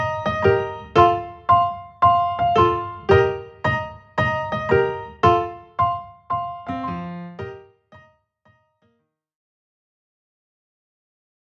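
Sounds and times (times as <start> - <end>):
piano: 0.0 - 8.8.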